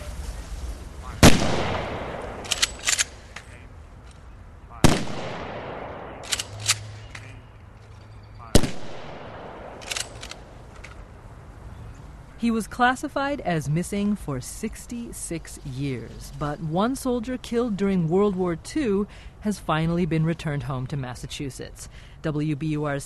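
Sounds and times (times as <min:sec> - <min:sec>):
military firing party firing rifle volleys: 0:01.2 - 0:03.4, 0:04.9 - 0:07.4, 0:08.6 - 0:10.9
metallic clicks: 0:02.4 - 0:03.4, 0:06.2 - 0:08.0, 0:09.7 - 0:11.0
speech: 0:12.4 - 0:23.0.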